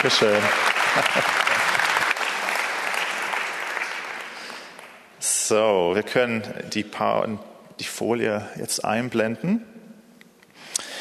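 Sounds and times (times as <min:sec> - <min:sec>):
speech: 0:00.0 - 0:01.5, 0:05.5 - 0:09.8
laughter: 0:00.0 - 0:02.1
warm audience applause: 0:00.0 - 0:05.0.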